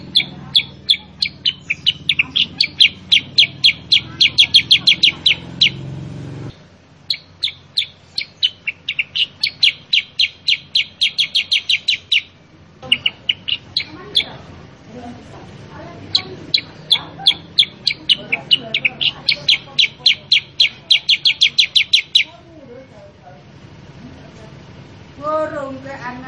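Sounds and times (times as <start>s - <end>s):
Sooty-headed bulbul calls: 0.0s - 14.4s, 15.8s - 22.4s.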